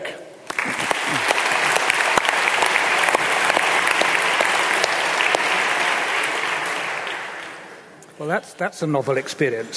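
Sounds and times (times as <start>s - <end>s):
audience applause: 0.5s - 7.9s
speech: 8.2s - 9.7s.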